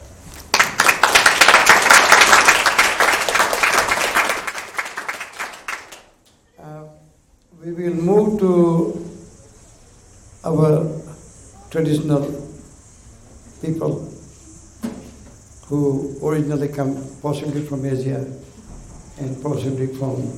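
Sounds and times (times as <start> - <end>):
audience applause: 0.4 - 6.2
speech: 7.8 - 9.0, 11.8 - 12.4, 13.6 - 14.0, 15.7 - 18.5, 19.2 - 20.3.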